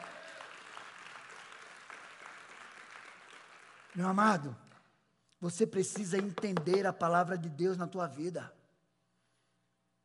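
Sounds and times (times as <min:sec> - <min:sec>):
audience applauding: 0:00.0 - 0:04.5
speech: 0:04.0 - 0:04.6, 0:05.4 - 0:08.6.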